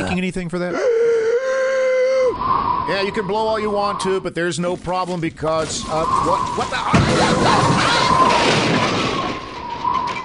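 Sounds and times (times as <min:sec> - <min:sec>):
speech: 0:00.1 - 0:01.1, 0:02.4 - 0:09.0
house of stacked bricks collapsing: 0:05.1 - 0:10.2.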